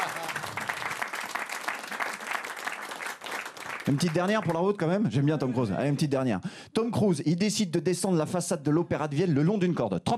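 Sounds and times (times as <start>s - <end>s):
audience applause: 0.0s - 4.6s
speech: 3.9s - 10.1s.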